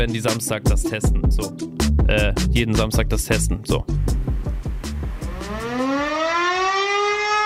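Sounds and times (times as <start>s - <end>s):
speech: 0.0s - 4.2s
standard fire alarm civil defense siren: 5.2s - 7.4s.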